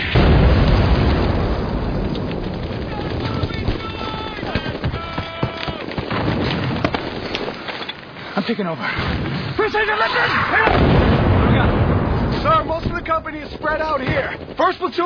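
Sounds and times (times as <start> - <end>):
explosion in a battle scene: 0.0 - 7.5, 10.4 - 15.0
soldiers shouting in a battle scene: 2.9 - 6.0, 9.6 - 10.8
speech: 8.5 - 11.0, 12.5 - 15.0.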